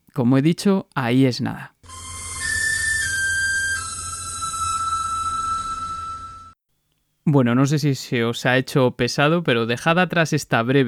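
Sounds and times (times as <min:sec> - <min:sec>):
speech: 0:00.2 - 0:01.7, 0:07.3 - 0:10.8
four-note whistled melody calling a mechanical bird: 0:01.8 - 0:06.6.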